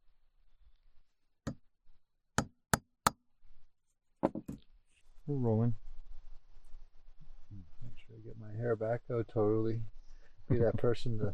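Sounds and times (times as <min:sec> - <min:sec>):
tapping notches into wood: 0:04.2 - 0:04.6
speech: 0:05.3 - 0:05.8, 0:08.2 - 0:11.3.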